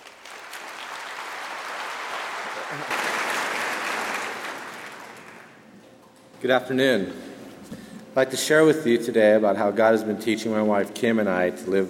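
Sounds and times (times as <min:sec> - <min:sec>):
audience applause welcoming a speaker at a faith-based talk: 0:00.0 - 0:05.8
speech: 0:02.7 - 0:03.2, 0:06.4 - 0:07.3, 0:08.2 - 0:11.8.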